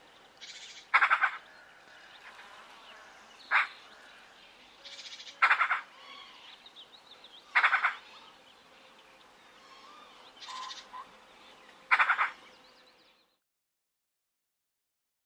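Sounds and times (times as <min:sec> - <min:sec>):
magpie giving a hoarse laughing series of calls: 0:00.4 - 0:01.5, 0:03.5 - 0:03.9, 0:04.9 - 0:06.6, 0:07.4 - 0:08.3, 0:09.6 - 0:11.1, 0:11.9 - 0:12.4.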